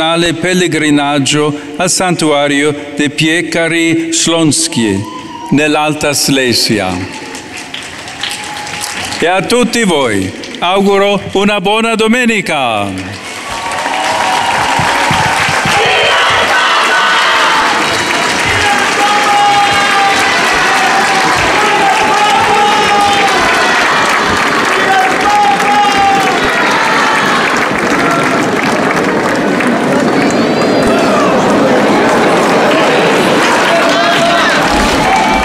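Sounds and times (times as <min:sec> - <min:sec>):
speech: 0:00.0 - 0:07.4, 0:09.2 - 0:13.2
crowd of faithful cheering and applauding before Pope Leo after a prayer: 0:05.0 - 0:10.7, 0:12.8 - 0:35.4.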